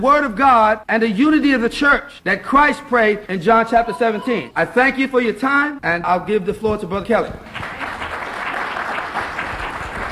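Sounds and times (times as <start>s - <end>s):
speech: 0.0s - 7.9s
church congregation clapping after a speech: 7.4s - 10.1s.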